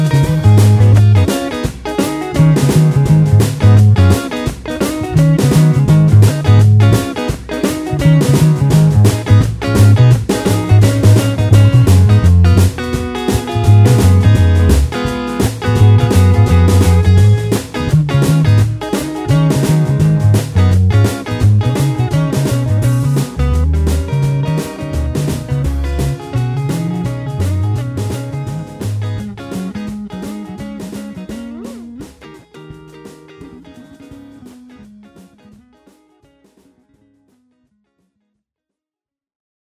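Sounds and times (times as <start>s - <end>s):
solo bass playing blues in A-flat: 0.0s - 35.7s.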